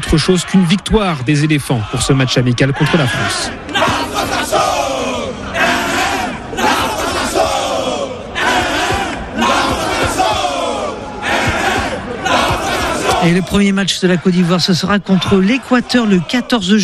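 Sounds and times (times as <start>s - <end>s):
stadium crowd of football supporters cheering and chanting: 0.0s - 16.8s
speech: 0.1s - 3.7s, 13.2s - 16.8s.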